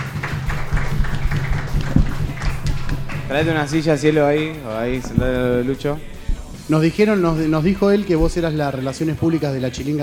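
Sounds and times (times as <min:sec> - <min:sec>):
audience applause: 0:00.0 - 0:06.0
speech: 0:03.3 - 0:06.1, 0:06.7 - 0:10.0.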